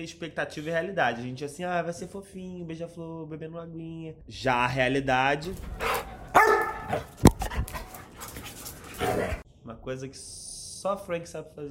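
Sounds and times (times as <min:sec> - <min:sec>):
speech: 0:00.0 - 0:06.0, 0:06.9 - 0:07.3, 0:09.8 - 0:11.7
dog panting: 0:05.5 - 0:09.4
dog barking: 0:05.7 - 0:07.2.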